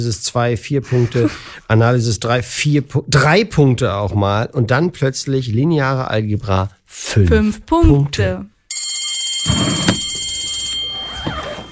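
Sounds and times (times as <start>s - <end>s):
speech: 0.0s - 8.5s
bell ringing: 8.7s - 11.7s.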